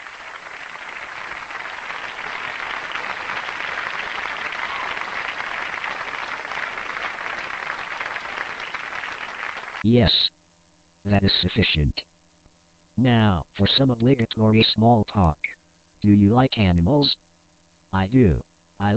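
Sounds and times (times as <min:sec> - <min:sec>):
round of applause: 0:00.0 - 0:09.9
speech: 0:09.8 - 0:10.3, 0:11.1 - 0:12.1, 0:13.0 - 0:15.4, 0:16.0 - 0:17.2, 0:17.9 - 0:18.9.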